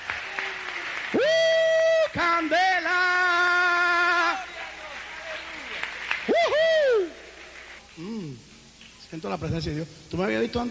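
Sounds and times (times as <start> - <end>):
audience applauding: 0.0 - 7.8
speech: 2.2 - 2.8, 9.1 - 10.6.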